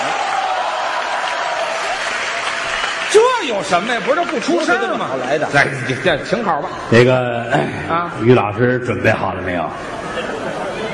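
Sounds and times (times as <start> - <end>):
audience applause: 0.0 - 6.1
speech: 3.1 - 10.6.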